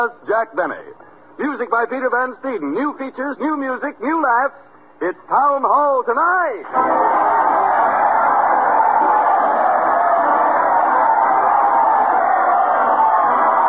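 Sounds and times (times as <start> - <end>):
speech: 0.0 - 8.1
crowd cheering: 6.6 - 13.6.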